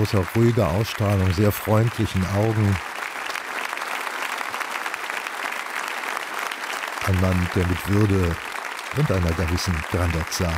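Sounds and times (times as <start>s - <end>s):
speech: 0.0s - 2.9s, 7.1s - 10.5s
audience applause: 0.0s - 10.5s.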